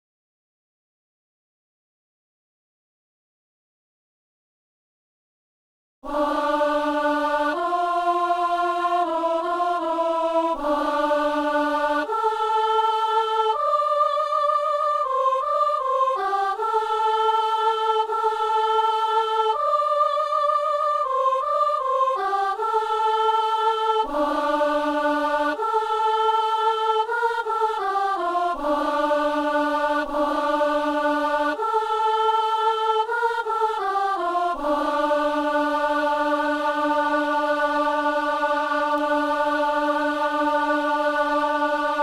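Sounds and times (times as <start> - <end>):
soprano singing: 6.1 - 42.0.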